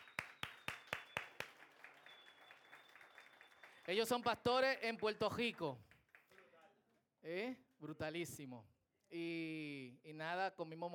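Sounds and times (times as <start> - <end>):
church audience rhythmic clapping in unison: 0.0 - 6.5
speech: 3.9 - 5.9, 7.2 - 10.9.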